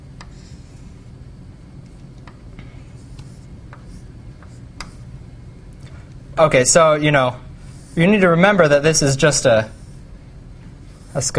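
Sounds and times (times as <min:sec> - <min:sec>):
scratchy strokes drawing a knot diagram by hand: 0:00.2 - 0:01.1, 0:02.8 - 0:05.2, 0:07.6 - 0:10.2, 0:10.8 - 0:11.3
speech: 0:06.4 - 0:07.4, 0:08.0 - 0:09.8, 0:11.2 - 0:11.3.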